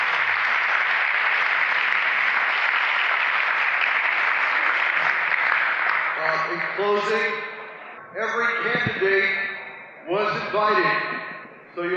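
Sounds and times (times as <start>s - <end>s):
audience applause: 0.0s - 7.4s
speech: 6.8s - 7.5s, 8.2s - 9.4s, 10.1s - 11.2s, 11.8s - 11.9s.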